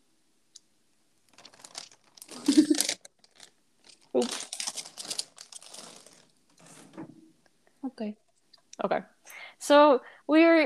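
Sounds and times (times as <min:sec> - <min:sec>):
plastic bag crinkling and rustling: 0:01.3 - 0:07.0
speech: 0:08.0 - 0:08.2, 0:08.8 - 0:10.6.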